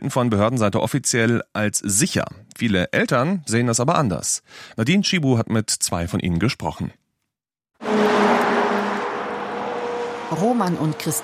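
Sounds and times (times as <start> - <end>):
speech: 0.0 - 7.0, 10.3 - 11.2
cars passing fast on a road with a 100 km/h limit: 7.8 - 11.2.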